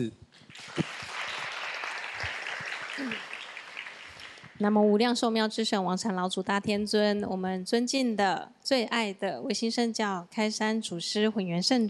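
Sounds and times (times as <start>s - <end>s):
speech: 0.0s - 0.2s, 0.8s - 1.0s, 4.6s - 11.8s
crowd clapping: 0.4s - 4.7s.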